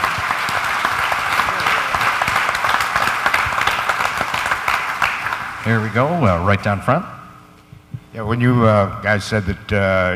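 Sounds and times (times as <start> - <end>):
audience applause: 0.0 - 6.1
speech: 5.7 - 7.2, 8.2 - 10.1.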